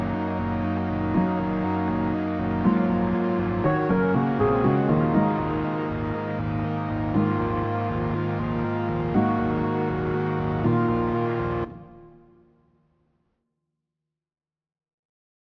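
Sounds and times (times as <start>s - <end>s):
lazy lo-fi music: 0.0s - 12.2s.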